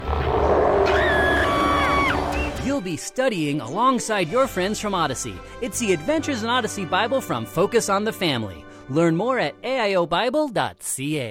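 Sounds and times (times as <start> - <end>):
dragon roar sound effect: 0.0 - 2.7
speech: 2.8 - 11.2.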